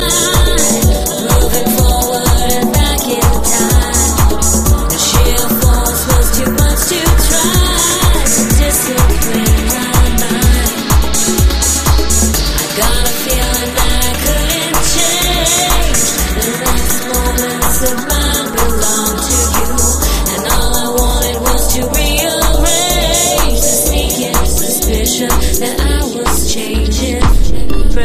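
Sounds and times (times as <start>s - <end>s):
lofi music: 0.0s - 28.0s.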